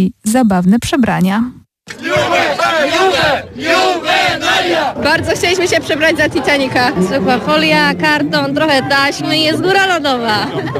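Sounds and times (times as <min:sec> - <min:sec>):
speech: 0:00.0 - 0:10.7
student procession crowd cheering: 0:01.9 - 0:10.7
laughter: 0:10.0 - 0:10.7.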